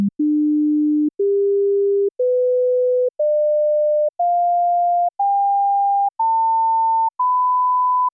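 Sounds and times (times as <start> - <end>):
sine tones: 0.2 - 8.1.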